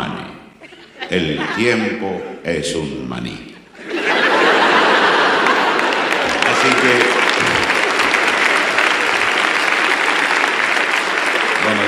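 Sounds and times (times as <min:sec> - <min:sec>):
laughter: 0:00.6 - 0:02.2, 0:03.6 - 0:11.8
speech: 0:01.1 - 0:03.5, 0:06.8 - 0:07.1
audience applause: 0:04.1 - 0:11.8.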